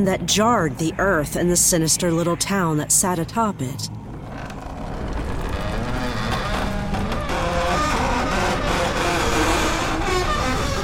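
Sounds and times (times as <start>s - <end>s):
speech: 0.0s - 4.1s
deep rumble: 3.8s - 10.8s
huge door creaking open: 4.0s - 10.8s.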